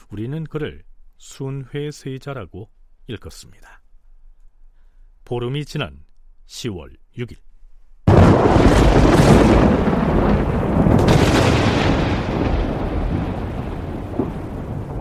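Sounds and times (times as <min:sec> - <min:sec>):
speech: 0:00.1 - 0:03.8, 0:05.3 - 0:07.5
thunder: 0:08.1 - 0:14.9.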